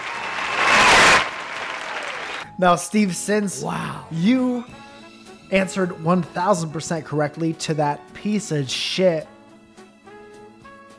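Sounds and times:
audience applause: 0.0 - 2.4
speech: 2.6 - 4.8, 5.5 - 9.4.

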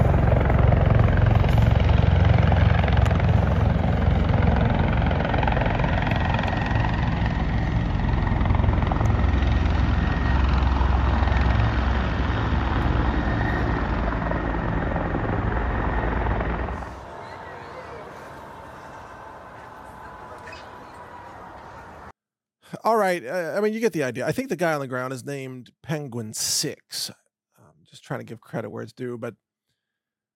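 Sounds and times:
helicopter turbine whine: 0.0 - 22.1
helicopters landing: 0.0 - 22.1
speech: 22.9 - 27.2, 27.9 - 29.4.

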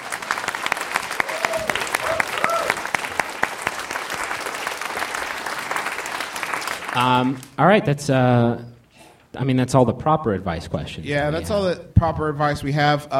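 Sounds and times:
audience applause: 0.0 - 7.6
whoops from the audience: 1.1 - 3.0
speech: 7.0 - 8.7, 9.3 - 13.1.

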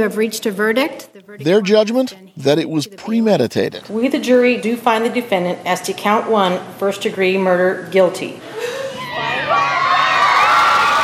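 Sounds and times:
speech: 0.0 - 8.8
crowd outside a courthouse cheering and shouting after a guilty verdict: 9.0 - 11.0.

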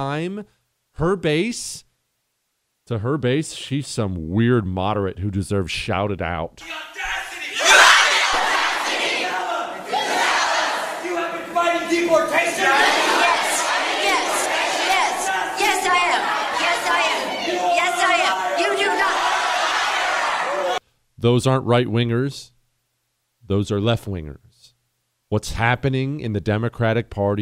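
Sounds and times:
speech: 0.0 - 1.9, 2.9 - 7.7, 21.2 - 22.5, 23.5 - 24.5, 25.3 - 27.4
large crowd cheering and shouting at a political event: 6.6 - 20.8.

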